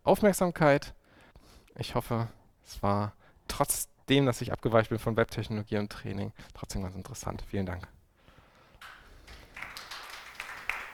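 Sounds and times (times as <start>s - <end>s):
speech: 0.1s - 1.0s, 1.8s - 8.0s
faint applause after a talk: 8.8s - 10.9s.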